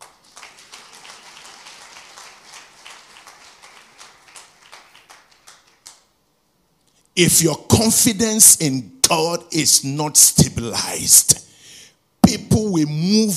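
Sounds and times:
audience clapping: 0.0 - 6.2
speech: 7.2 - 11.5, 12.3 - 13.3.

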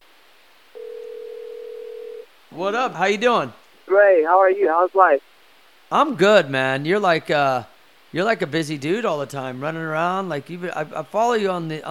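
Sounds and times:
faint hiss: 0.0 - 11.8
telephone line tone: 0.8 - 2.2
speech: 2.5 - 5.3, 5.9 - 11.8.

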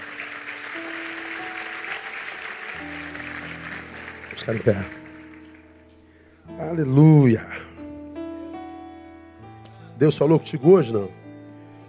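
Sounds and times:
audience applauding: 0.0 - 5.8
sustained organ or keyboard tones: 0.0 - 7.0
speech: 4.4 - 5.0, 6.7 - 7.6, 10.0 - 11.2.

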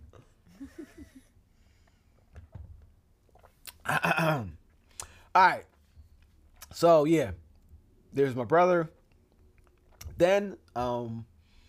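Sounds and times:
person sipping water: 3.2 - 3.9, 4.7 - 5.2
speech: 3.9 - 4.6, 5.4 - 5.7, 6.7 - 7.4, 8.1 - 9.0, 10.2 - 11.3.

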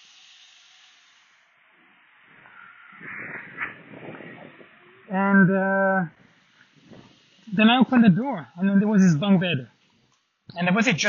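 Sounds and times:
car passing by: 2.2 - 5.2
speech: 5.1 - 6.2, 7.5 - 9.7, 10.5 - 11.0.

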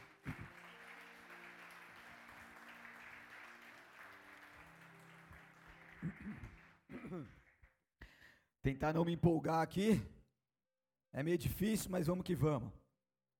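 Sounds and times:
applause: 0.0 - 7.8
speech: 6.0 - 7.4, 8.6 - 10.2, 11.1 - 12.8.

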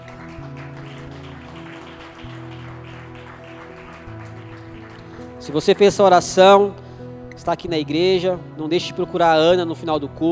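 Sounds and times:
audience applauding: 0.0 - 6.2
speech: 5.4 - 6.8, 7.4 - 10.3.

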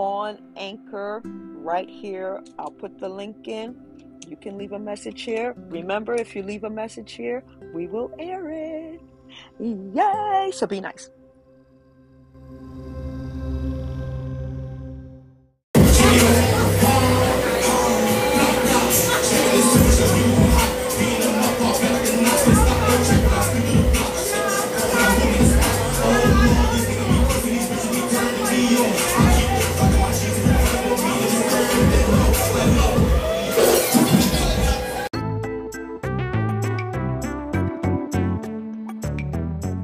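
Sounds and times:
speech: 0.3 - 11.2
live crowd noise at a DJ event: 15.8 - 35.1
pounding music at a DJ event: 15.8 - 39.4.

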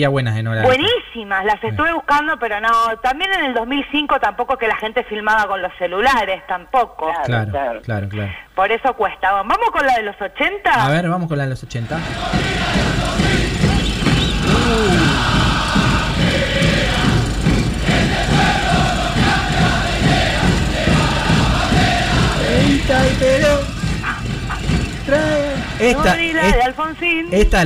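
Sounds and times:
speech: 0.0 - 13.3, 14.7 - 15.1, 22.9 - 23.7, 25.1 - 27.6
large protest crowd chanting and shouting: 11.8 - 26.7.

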